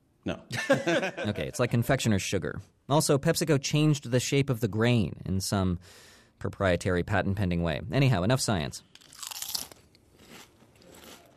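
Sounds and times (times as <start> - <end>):
speech: 0.2 - 9.1
laughter: 0.5 - 1.8
crunch of biting into a Lay's reduced salt potato chip: 8.9 - 11.3.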